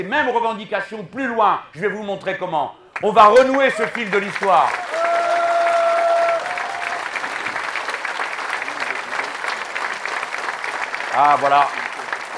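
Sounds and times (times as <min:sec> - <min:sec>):
speech: 0:00.0 - 0:05.0, 0:11.2 - 0:11.8
audience applauding at a public meeting: 0:03.0 - 0:12.3.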